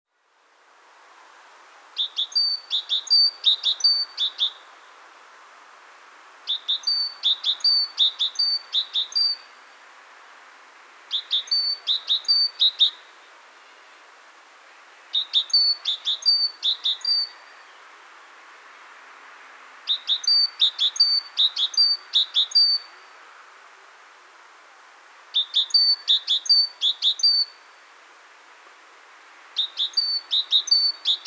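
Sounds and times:
great tit whistled song: 2.0 - 4.6, 6.5 - 9.5, 11.1 - 13.0, 15.2 - 17.4, 19.9 - 22.9, 25.4 - 27.6, 29.6 - 31.2.

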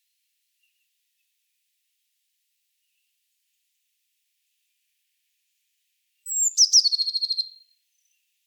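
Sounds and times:
Eurasian blue tit (Cyanistes caeruleus) giving rapid high buzzy trills: 6.3 - 7.5.

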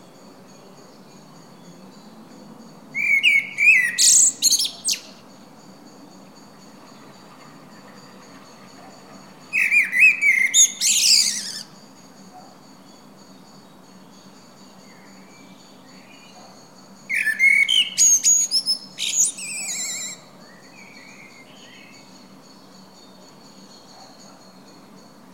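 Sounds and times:
common blackbird singing: 3.0 - 5.2, 9.5 - 11.7, 17.1 - 22.1.

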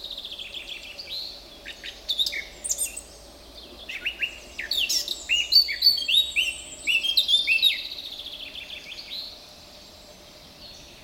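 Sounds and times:
Eurasian blackcap Sylvia atricapilla warbling song: 0.2 - 3.1, 3.8 - 7.9.

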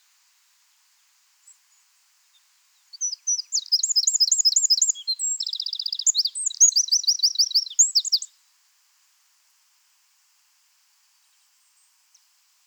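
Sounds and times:
Eurasian wren singing: 3.0 - 8.3.

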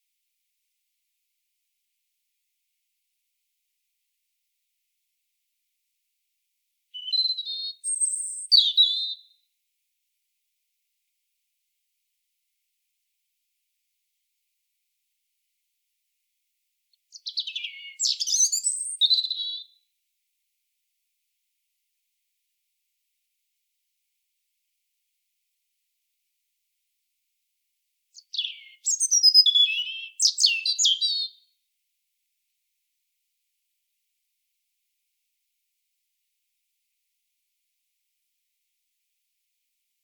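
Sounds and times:
European robin song: 7.0 - 9.3, 17.1 - 19.8, 28.2 - 31.4.

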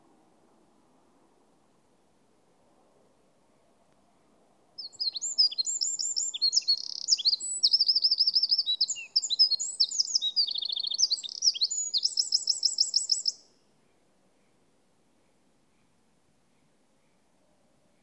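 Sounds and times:
Eurasian wren song: 4.8 - 18.0.

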